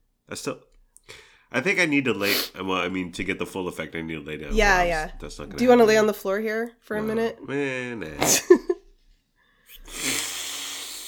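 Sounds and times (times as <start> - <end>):
speech: 0.3 - 8.7
powerful nasal sniff: 2.2 - 2.6, 9.6 - 11.0.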